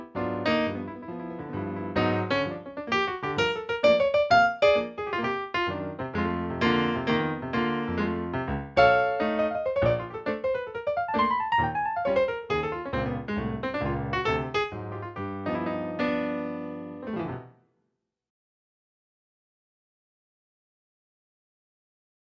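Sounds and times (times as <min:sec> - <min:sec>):
piano: 0:00.0 - 0:17.7.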